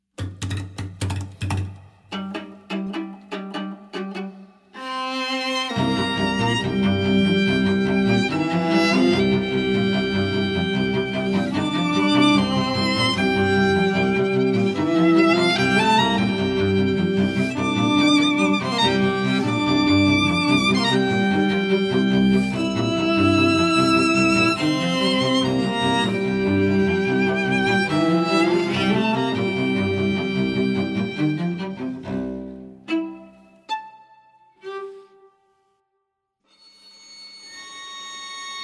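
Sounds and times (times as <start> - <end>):
scary monster string trio music: 1.1 - 35.5.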